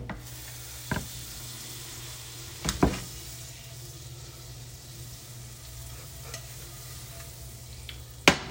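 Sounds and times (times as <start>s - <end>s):
butter sizzling in a frying pan: 0.2s - 8.3s.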